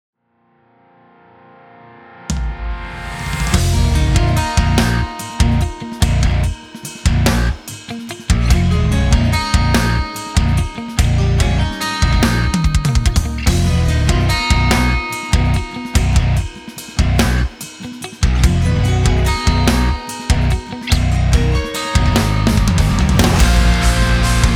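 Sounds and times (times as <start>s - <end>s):
shred backing track: 3.4s - 24.5s.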